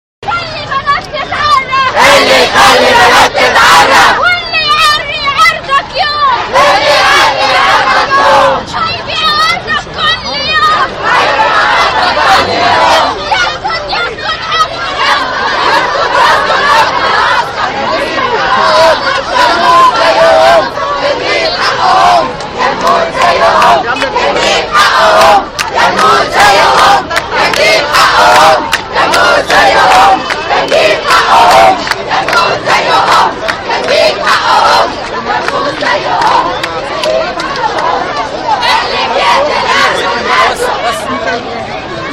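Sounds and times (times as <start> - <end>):
women protesters chanting in Tahrir: 0.5 - 41.4.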